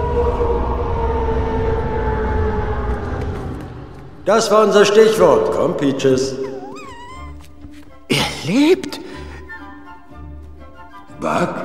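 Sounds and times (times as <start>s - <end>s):
long loud droning roar: 0.0s - 5.7s
speech: 4.3s - 6.4s, 8.5s - 8.9s, 11.2s - 11.6s.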